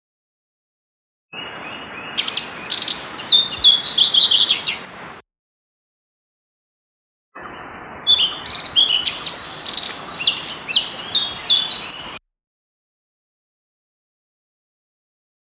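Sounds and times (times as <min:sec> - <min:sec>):
blue-throated flycatcher chirping: 0:01.4 - 0:04.9, 0:07.4 - 0:12.2.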